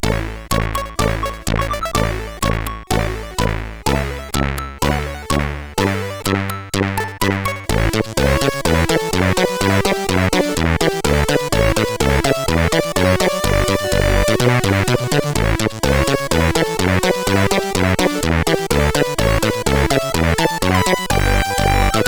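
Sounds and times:
fanfare on a SID CSG8580R5 sound chip: 0.0s - 22.0s.

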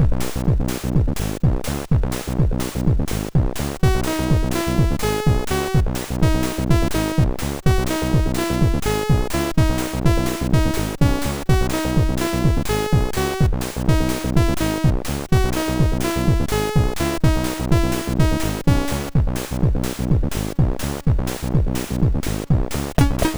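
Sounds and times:
folk techno on MOS6581R2 chip: 0.0s - 23.3s.

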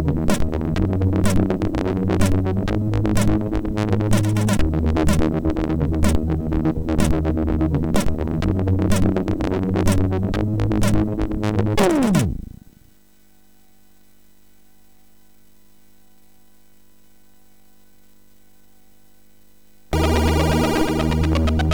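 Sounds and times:
intro music on MOS6581R4 SID chip: 0.0s - 12.6s, 20.0s - 21.7s.

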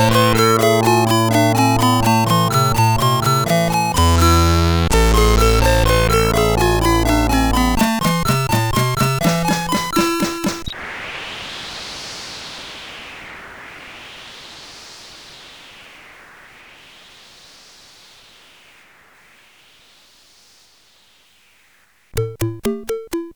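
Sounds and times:
bassline on CSG8580R5 SID chip: 0.0s - 10.6s, 22.2s - 23.3s.

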